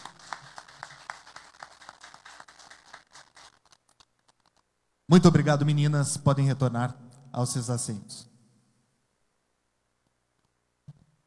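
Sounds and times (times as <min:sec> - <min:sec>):
round of applause: 0:00.0 - 0:03.9
speech: 0:05.1 - 0:08.3.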